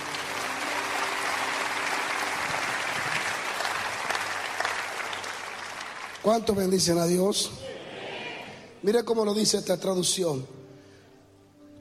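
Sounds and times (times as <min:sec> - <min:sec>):
audience applauding: 0:00.0 - 0:07.2
speech: 0:06.2 - 0:07.7, 0:08.8 - 0:10.6.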